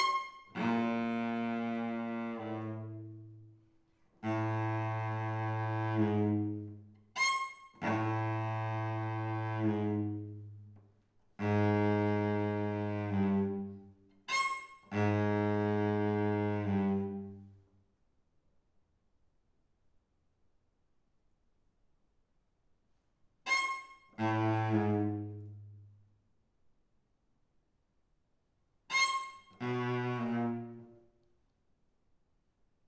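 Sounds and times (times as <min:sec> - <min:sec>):
cello: 0:00.0 - 0:17.7, 0:23.4 - 0:26.0, 0:28.9 - 0:31.2.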